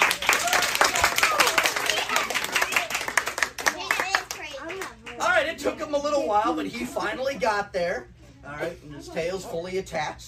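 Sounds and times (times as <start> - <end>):
audience applause: 0.0 - 5.5
speech: 5.6 - 10.2.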